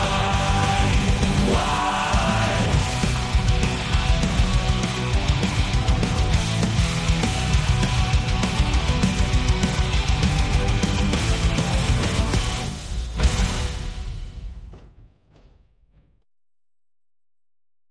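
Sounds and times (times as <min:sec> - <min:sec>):
hard rock music: 0:00.0 - 0:14.2.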